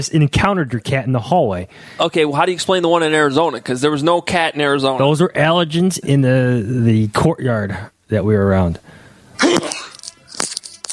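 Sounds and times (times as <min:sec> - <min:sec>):
speech: 0:00.0 - 0:09.9
sneeze: 0:09.4 - 0:10.0.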